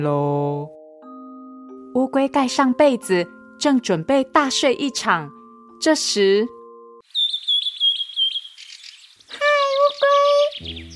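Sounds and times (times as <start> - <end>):
speech: 0.0 - 0.8, 2.0 - 6.6
robin chirping in a tree: 7.0 - 10.9.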